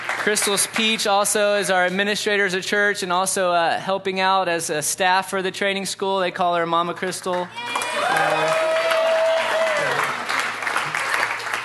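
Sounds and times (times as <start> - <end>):
audience applause: 0.0 - 1.0, 7.6 - 11.6
speech: 0.2 - 8.6.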